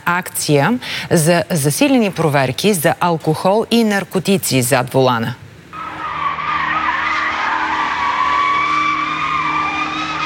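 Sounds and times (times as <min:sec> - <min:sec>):
speech: 0:00.1 - 0:05.4
tire squeal from a car skidding during illegal street racing: 0:05.8 - 0:10.2.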